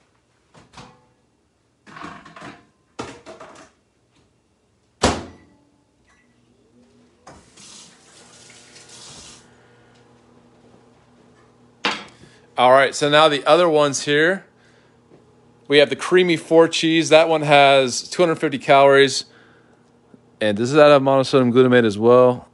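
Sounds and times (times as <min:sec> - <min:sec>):
microwave oven running: 0:07.2 - 0:21.4
speech: 0:12.6 - 0:14.5, 0:15.7 - 0:19.3, 0:20.4 - 0:22.5.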